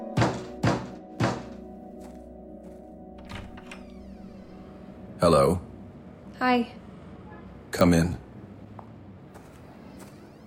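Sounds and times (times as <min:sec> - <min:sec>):
knocking on a door: 0:00.1 - 0:01.6
speech: 0:05.2 - 0:05.7, 0:06.4 - 0:06.8, 0:07.8 - 0:08.2.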